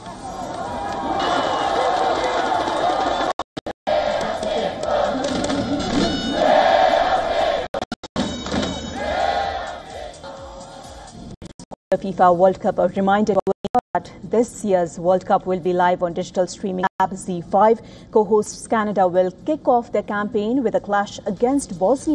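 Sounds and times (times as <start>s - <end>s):
fans cheering in celebration after dramatic win: 0.0s - 7.7s, 8.8s - 11.2s
speech: 12.0s - 13.4s, 14.3s - 22.1s.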